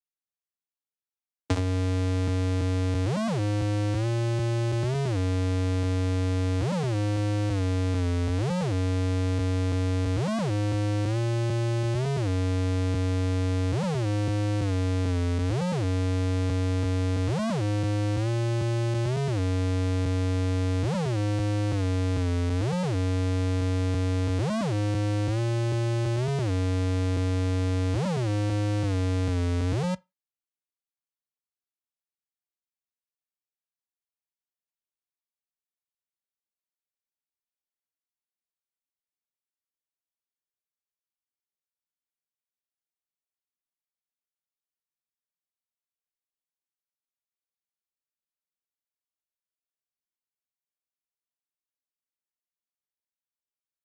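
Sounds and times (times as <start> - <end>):
bass: 1.5 - 30.1.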